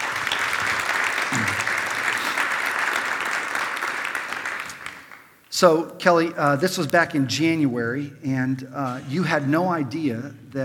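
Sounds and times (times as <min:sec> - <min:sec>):
audience applause welcoming a speaker onto the stage: 0:00.0 - 0:05.4
speech: 0:05.6 - 0:10.6.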